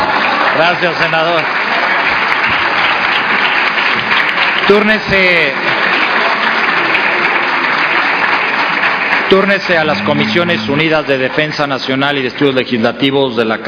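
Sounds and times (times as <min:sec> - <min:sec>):
crowd applause in the senate chamber: 0:00.0 - 0:12.0
speech: 0:00.6 - 0:01.6, 0:04.7 - 0:05.8, 0:09.3 - 0:13.6
person calling out: 0:09.8 - 0:10.9.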